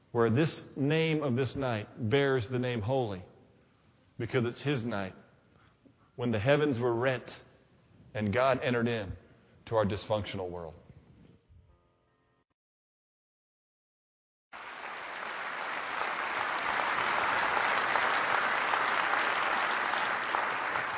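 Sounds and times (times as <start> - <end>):
speech: 0.1 - 3.3, 4.2 - 5.2, 6.2 - 7.5, 8.1 - 10.8
audience clapping in church: 14.6 - 20.9.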